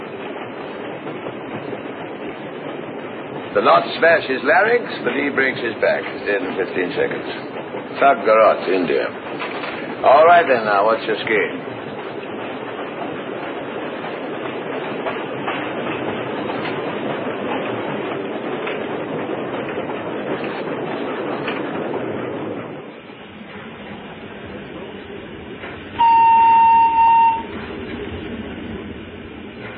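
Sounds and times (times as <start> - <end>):
train rumbling on tracks: 0.0 - 29.7
speech: 3.6 - 11.6
train horn blast: 26.0 - 27.5.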